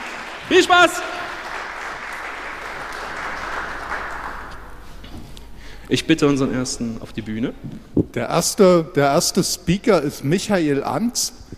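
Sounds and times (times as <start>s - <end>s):
audience applause: 0.0s - 4.8s
speech: 0.5s - 1.2s, 5.9s - 11.5s.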